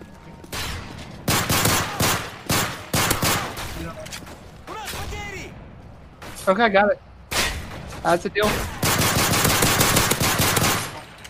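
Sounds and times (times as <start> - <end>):
gunfire from enemy troops in a video game: 0.5 - 4.0, 7.4 - 11.2
speech: 6.4 - 7.1, 8.0 - 8.7.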